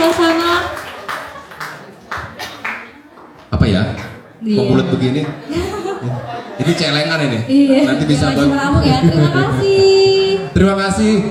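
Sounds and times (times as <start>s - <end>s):
hand clapping given as encouragement: 0.0s - 4.2s
laughter: 0.0s - 11.2s
speech: 3.7s - 11.2s.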